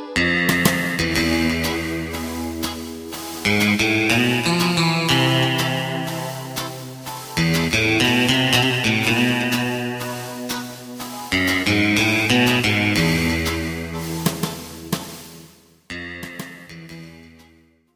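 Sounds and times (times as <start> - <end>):
bass: 0.2 - 15.3, 15.9 - 17.7.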